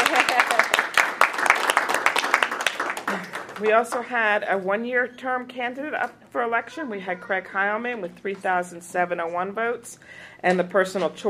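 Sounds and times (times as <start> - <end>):
crowd applause: 0.0 - 4.2
speech: 3.6 - 11.2.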